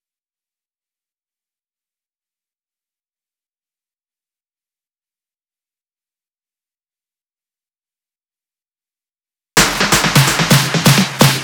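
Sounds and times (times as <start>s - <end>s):
drum and percussion fill: 9.6s - 11.4s.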